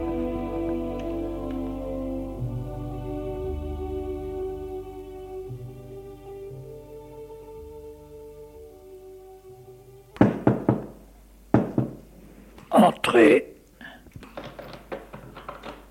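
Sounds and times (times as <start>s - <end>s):
soft sustained music: 0.0s - 10.2s
knocking on an office door: 10.2s - 12.0s
speech: 13.2s - 13.5s.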